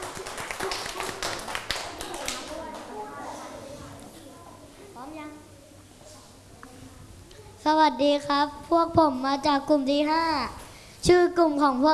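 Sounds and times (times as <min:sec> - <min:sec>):
classroom group clapping for encouragement: 0:00.0 - 0:03.0
children's voices murmuring: 0:00.5 - 0:11.8
speech: 0:07.7 - 0:11.9.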